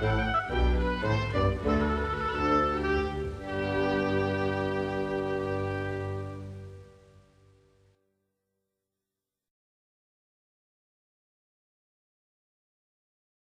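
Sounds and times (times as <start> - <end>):
soprano singing an aria: 0.0 - 6.9.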